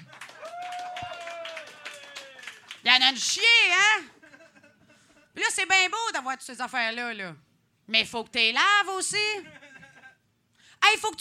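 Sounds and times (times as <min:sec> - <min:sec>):
audience applause: 0:00.0 - 0:02.8
speech: 0:02.9 - 0:04.2, 0:05.4 - 0:09.6, 0:10.9 - 0:11.1
laughter: 0:04.1 - 0:05.4, 0:09.4 - 0:10.2.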